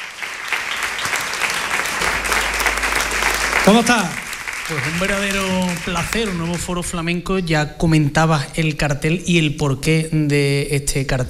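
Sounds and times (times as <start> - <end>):
audience applause: 0.0 - 7.0
speech: 3.6 - 11.2.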